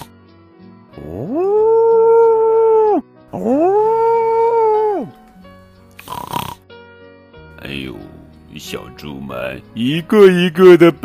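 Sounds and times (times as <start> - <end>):
wolf howling: 1.0 - 5.2
speech: 8.7 - 11.0.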